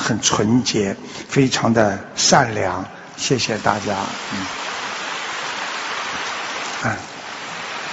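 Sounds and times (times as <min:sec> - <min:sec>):
speech: 0:00.1 - 0:04.6, 0:06.8 - 0:07.1
large audience applause: 0:03.5 - 0:07.9.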